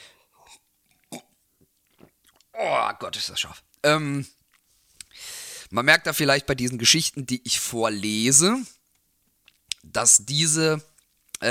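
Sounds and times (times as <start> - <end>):
person sipping a drink: 0.3 - 2.6
speech: 2.6 - 4.4, 5.7 - 8.8, 9.8 - 11.4
soft breaths: 4.6 - 5.8.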